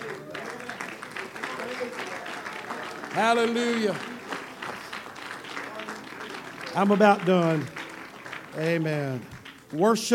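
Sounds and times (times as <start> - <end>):
audience clapping hands: 0.0 - 10.1
speech: 3.2 - 4.1, 6.8 - 7.8, 8.6 - 10.1.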